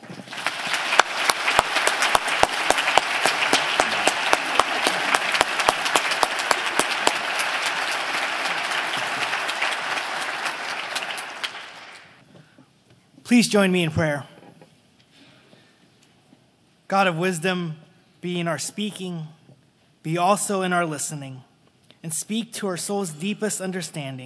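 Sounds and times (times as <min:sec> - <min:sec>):
church congregation applauding to welcome a guest speaker: 0:00.0 - 0:12.2
speech: 0:13.3 - 0:14.3, 0:16.9 - 0:19.4, 0:20.0 - 0:24.2.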